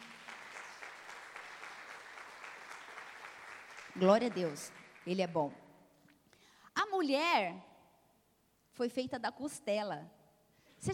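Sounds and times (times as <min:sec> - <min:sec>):
audience round of applause: 0:00.0 - 0:05.0
speech: 0:04.0 - 0:05.6, 0:07.0 - 0:07.7, 0:08.8 - 0:10.2.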